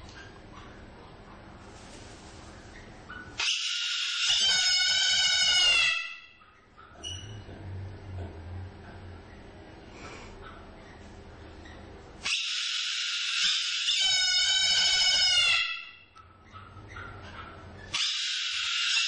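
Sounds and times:
parrots singing: 2.7 - 7.4, 11.6 - 19.0.

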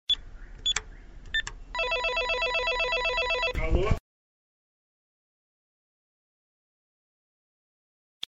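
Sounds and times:
intercom keypad dialing: 0.1 - 3.6.

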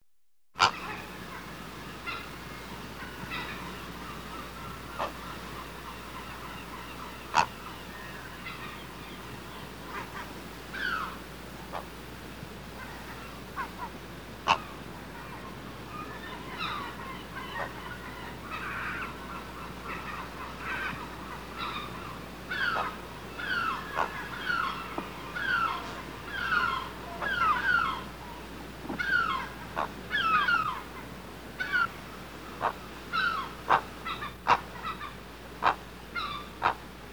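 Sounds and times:
great blue heron alarm calls from nest: 0.6 - 11.9, 12.8 - 36.8.

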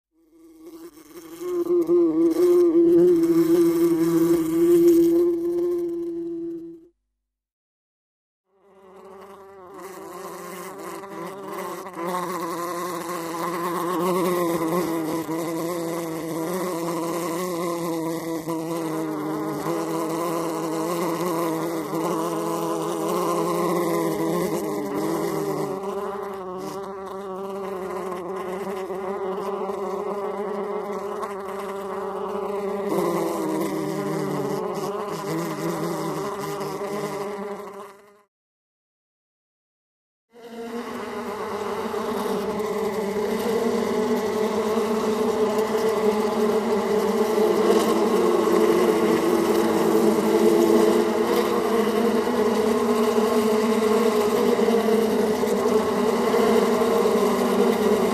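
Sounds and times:
many flies buzzing: 0.2 - 7.0, 8.5 - 38.3, 40.3 - 58.1.

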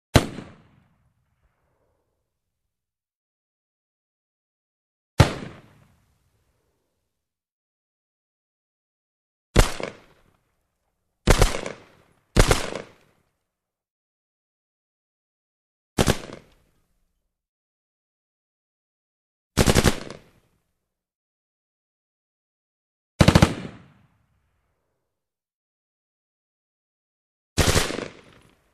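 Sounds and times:
M-16 rifle single shots: 0.2 - 0.9, 5.2 - 5.9, 9.6 - 10.3, 11.3 - 13.1, 16.0 - 16.6, 19.6 - 20.3, 23.2 - 24.0, 27.6 - 28.6.

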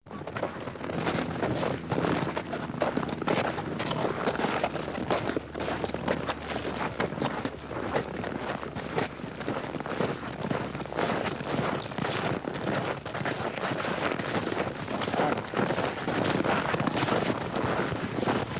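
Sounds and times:
horse walking on snow: 0.1 - 18.5.

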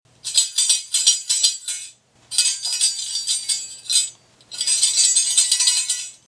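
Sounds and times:
shaker: 0.2 - 6.2.

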